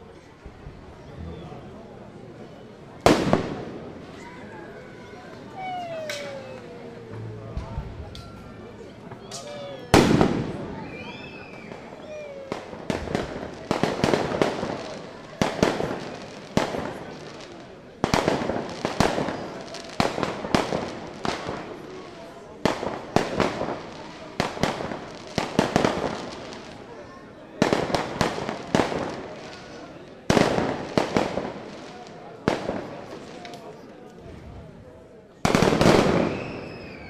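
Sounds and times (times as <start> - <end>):
fireworks for the French national holiday resounding through a city: 3.0 - 4.1, 5.4 - 8.0, 9.2 - 27.0, 27.6 - 33.9, 35.4 - 37.0.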